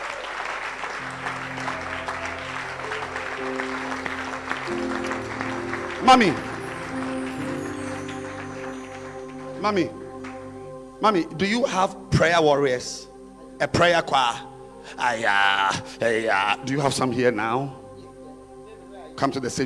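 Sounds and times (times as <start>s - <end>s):
church congregation clapping during a service: 0.0s - 11.2s
sustained musical tones: 1.0s - 19.6s
speech: 6.1s - 6.5s, 9.6s - 10.0s, 11.0s - 17.8s, 19.2s - 19.6s.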